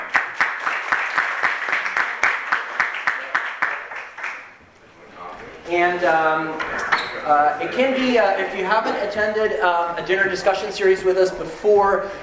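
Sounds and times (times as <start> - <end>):
group clapping: 0.0 - 4.6
speech: 5.7 - 12.2.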